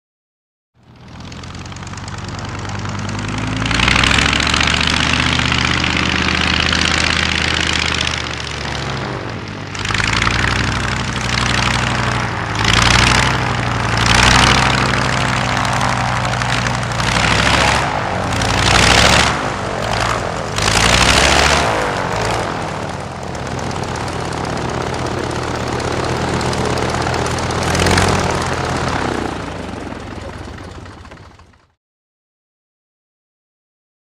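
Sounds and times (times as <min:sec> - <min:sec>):
old propeller aircraft taxiing and revving then engine cut: 0:00.8 - 0:31.8.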